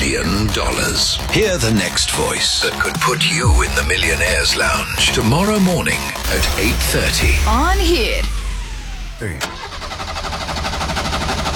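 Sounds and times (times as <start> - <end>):
speech: 0.1 - 8.4, 9.2 - 9.6
car engine struggling to start: 6.2 - 11.5.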